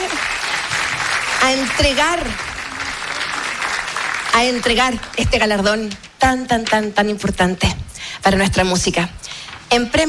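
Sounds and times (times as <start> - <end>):
crowd applause: 0.0 - 5.2
speech: 1.4 - 2.5, 4.4 - 10.0.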